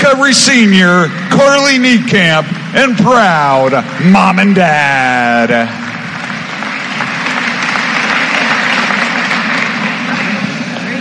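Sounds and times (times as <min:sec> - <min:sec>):
speech: 0:00.1 - 0:05.8
audience applause: 0:04.7 - 0:11.0.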